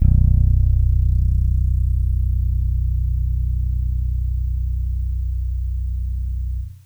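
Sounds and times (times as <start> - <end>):
bass: 0.0 - 6.8.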